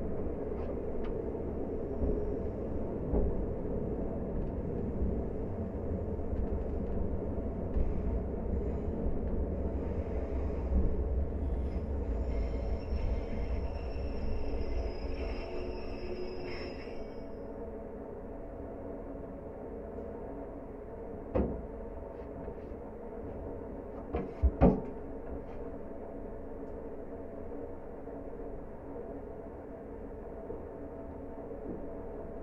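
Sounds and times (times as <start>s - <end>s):
train recorded with a contact microphone: 0.0s - 32.4s.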